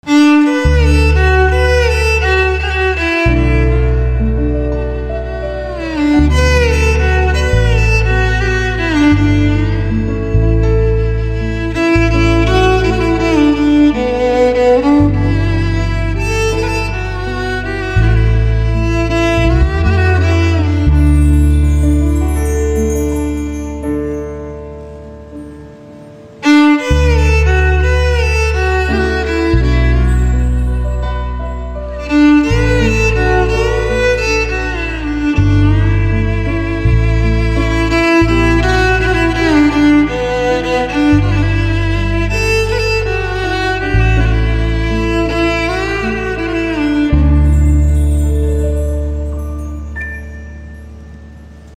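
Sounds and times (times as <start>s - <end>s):
slow violin: 0.0s - 51.7s.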